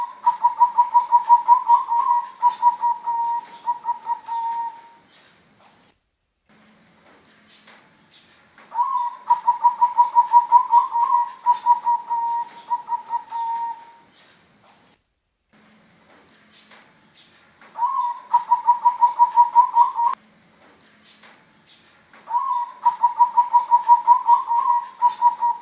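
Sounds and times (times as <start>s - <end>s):
Bangkok type zebra dove singing quick evenly pulsed coos: 0.0s - 5.0s, 8.7s - 14.1s, 17.8s - 20.2s, 22.3s - 25.5s.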